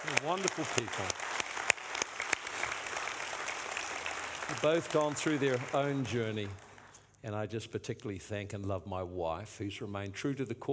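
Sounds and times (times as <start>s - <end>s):
speech: 0.0s - 1.3s, 4.5s - 6.6s, 7.2s - 10.7s
audience applauding: 0.0s - 7.0s.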